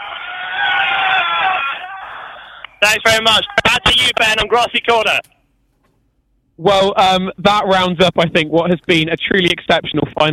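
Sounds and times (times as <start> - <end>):
crew of the Cats boat cheering together at a rowing event at the Riverside: 0.0 - 4.6
speech: 2.8 - 5.3, 6.6 - 10.3.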